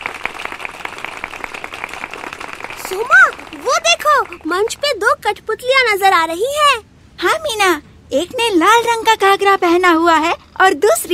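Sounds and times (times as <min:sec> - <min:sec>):
rhythmic audience clapping before a puppet show: 0:00.0 - 0:04.5
speech: 0:02.9 - 0:11.1.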